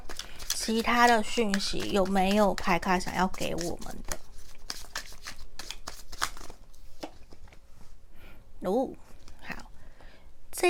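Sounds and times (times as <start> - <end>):
tarot cards being drawn: 0.0 - 2.2, 3.4 - 7.4
speech: 0.7 - 4.1, 8.6 - 9.0.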